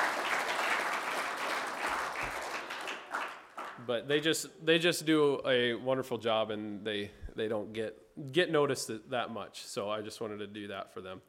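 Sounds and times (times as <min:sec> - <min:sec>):
audience applause: 0:00.0 - 0:03.8
speech: 0:03.9 - 0:11.2.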